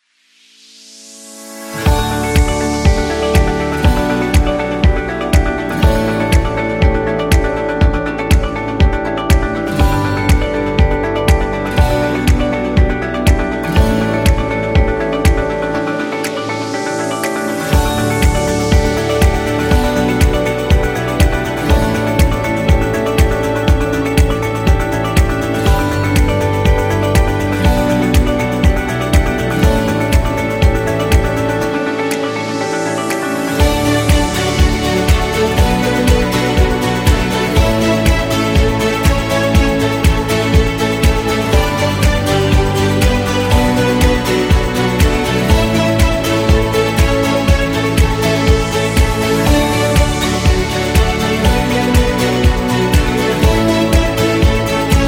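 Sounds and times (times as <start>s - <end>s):
inspirational corporate music: 0.4s - 55.0s.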